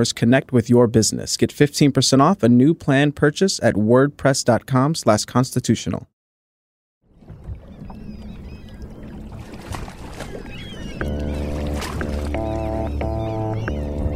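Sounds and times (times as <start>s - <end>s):
speech: 0.0s - 6.2s
waves slapping against a steamship in San Francisco Bay: 7.1s - 13.7s.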